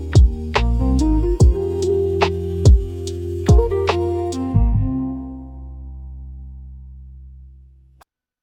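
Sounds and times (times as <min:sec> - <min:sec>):
rainy lofi music: 0:00.0 - 0:06.5.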